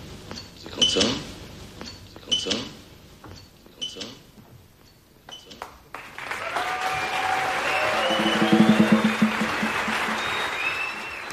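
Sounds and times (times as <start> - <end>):
speech: 0.9 - 1.3
audience applause in a jazz setting: 5.9 - 11.3.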